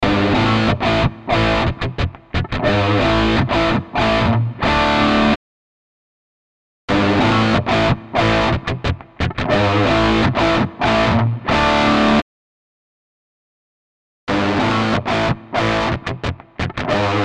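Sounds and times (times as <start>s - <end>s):
electric guitar: 0.0s - 5.4s, 6.9s - 12.2s, 14.3s - 17.2s.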